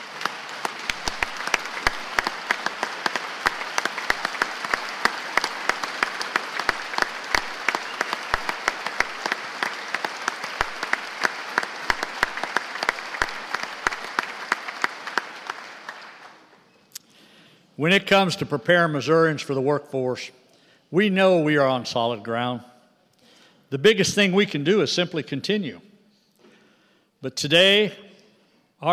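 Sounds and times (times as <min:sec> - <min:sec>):
audience applause: 0:00.0 - 0:16.6
speech: 0:17.8 - 0:22.7, 0:23.7 - 0:25.9, 0:27.2 - 0:28.0, 0:28.8 - 0:28.9.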